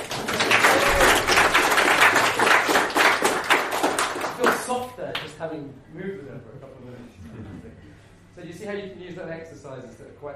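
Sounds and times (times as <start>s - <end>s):
group applauding: 0.0s - 5.3s
speech: 8.4s - 10.3s.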